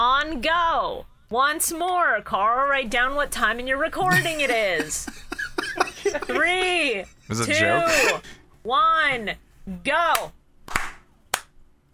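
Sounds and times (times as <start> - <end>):
faint hiss: 0.0 - 11.9
speech: 0.2 - 5.2, 5.8 - 10.4
laughter: 4.0 - 8.3
sharp hand claps for recording sync: 10.1 - 11.5.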